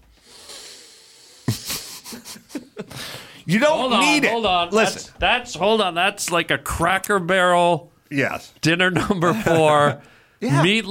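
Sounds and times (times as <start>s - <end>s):
person sniffing someone's head: 0.0s - 3.5s
speech: 3.5s - 10.8s.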